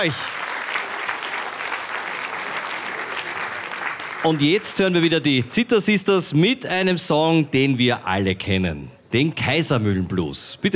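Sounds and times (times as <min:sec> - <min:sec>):
speech: 0:00.0 - 0:00.4, 0:04.2 - 0:10.7
strong applause: 0:00.0 - 0:05.4.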